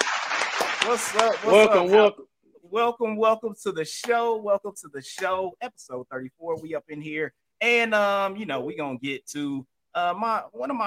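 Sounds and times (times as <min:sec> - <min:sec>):
audience applause: 0:00.0 - 0:01.8
speech: 0:00.9 - 0:10.8.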